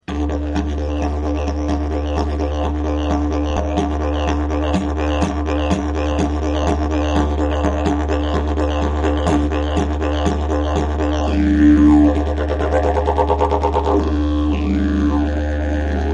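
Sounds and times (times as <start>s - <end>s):
didgeridoo: 0.0s - 16.1s.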